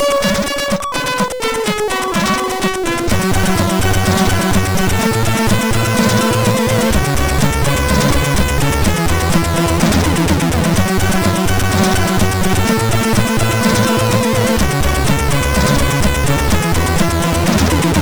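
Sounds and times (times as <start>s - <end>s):
intro music on MOS6581R4 chip: 0.1s - 17.9s.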